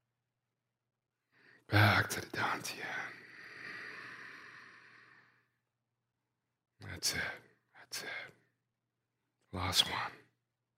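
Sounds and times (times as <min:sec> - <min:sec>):
speech: 0:01.7 - 0:03.2, 0:06.9 - 0:08.4, 0:09.5 - 0:10.2
deep breath in during a qigong breathing exercise: 0:03.2 - 0:05.5.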